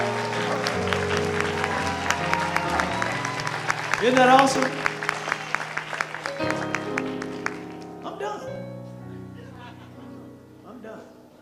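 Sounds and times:
audience applause for new couples at a marriage event: 0.0s - 8.0s
speech: 4.0s - 4.9s.

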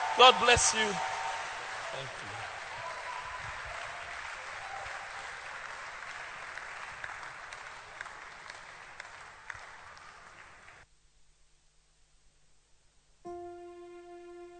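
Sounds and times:
audience clapping: 0.0s - 10.8s
speech: 0.2s - 1.1s, 1.9s - 2.3s.

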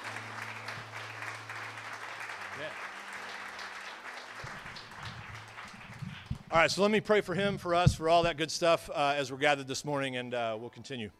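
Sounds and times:
audience applause: 0.0s - 6.6s
speech: 6.5s - 11.1s.

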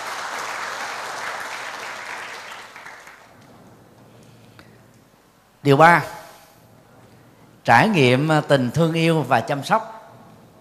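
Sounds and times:
audience applause: 0.0s - 3.4s
speech: 5.6s - 6.2s, 7.7s - 9.9s.

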